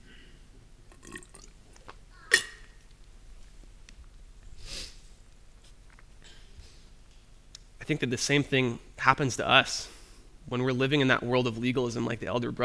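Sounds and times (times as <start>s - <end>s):
person drinking water: 0.9s - 2.8s
speech: 7.9s - 9.9s, 10.5s - 12.6s.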